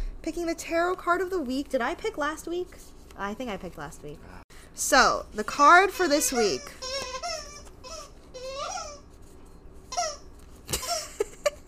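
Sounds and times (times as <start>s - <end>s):
speech: 0.2s - 6.9s
rubber dog toy squeaking while chewed: 5.7s - 9.1s, 9.9s - 11.0s.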